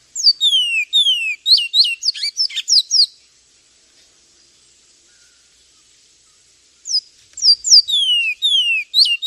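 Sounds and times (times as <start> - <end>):
Javan tesia piercing high chirps and falling whistles: 0.2 - 3.2, 6.9 - 9.2.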